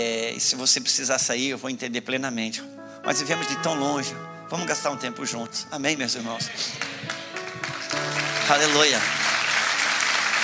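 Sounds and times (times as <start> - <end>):
speech: 0.0 - 7.2, 8.5 - 9.3
musical tones humming: 3.0 - 10.2
crowd applause: 6.7 - 10.4.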